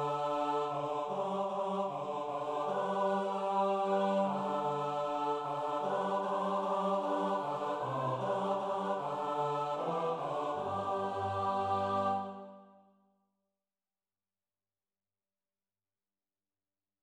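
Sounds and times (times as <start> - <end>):
SATB four-part choir singing: 0.0 - 12.8.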